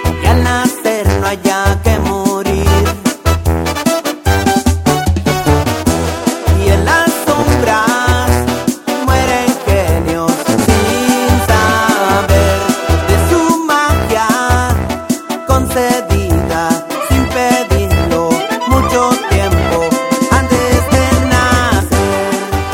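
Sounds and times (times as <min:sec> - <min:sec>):
banda music: 0:00.0 - 0:22.7.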